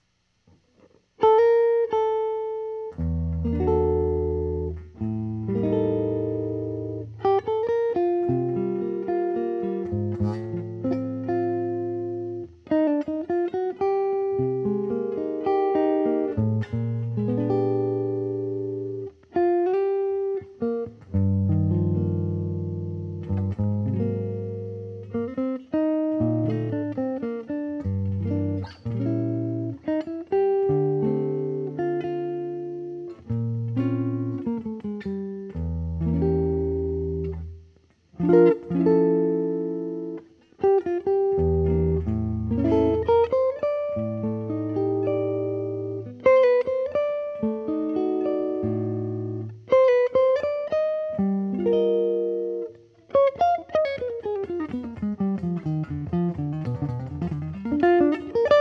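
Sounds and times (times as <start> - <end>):
guitars through Amati Amp and Amati Bridge: 0.0 - 58.6.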